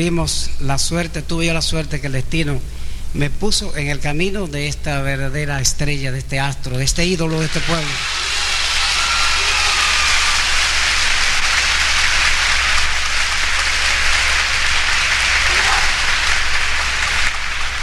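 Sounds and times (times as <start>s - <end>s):
speech: 0.0s - 8.2s
warm audience applause in a hall: 7.3s - 17.8s.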